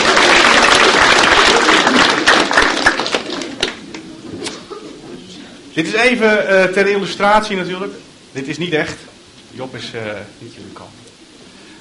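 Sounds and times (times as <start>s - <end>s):
audience applause: 0.0s - 4.0s
speech: 5.8s - 11.1s.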